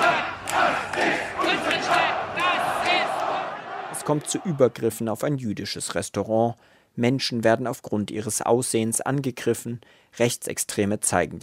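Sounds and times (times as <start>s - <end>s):
crowd of demonstrators shouting and chanting: 0.0s - 4.9s
speech: 4.1s - 11.4s.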